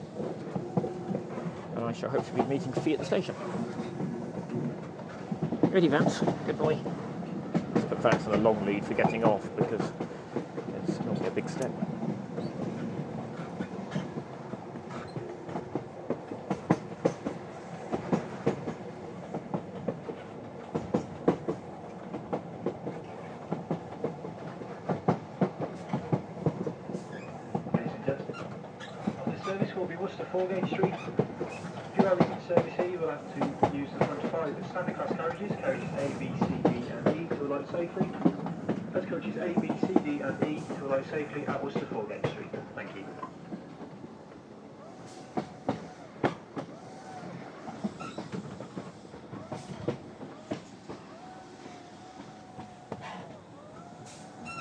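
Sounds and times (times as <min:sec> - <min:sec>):
train rumbling with clickety-clack: 0:00.0 - 0:54.6
speech: 0:01.9 - 0:04.1, 0:05.7 - 0:07.0, 0:08.0 - 0:10.2, 0:11.4 - 0:11.9
train wheels squealing round a corner: 0:27.0 - 0:27.5, 0:28.3 - 0:29.7, 0:44.8 - 0:54.6.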